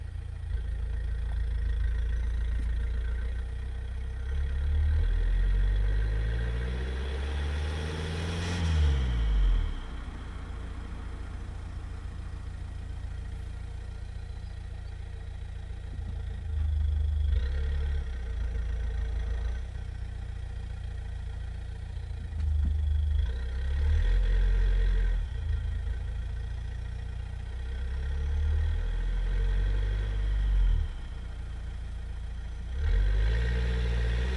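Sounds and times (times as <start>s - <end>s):
car driving and stopping: 0.0s - 34.3s.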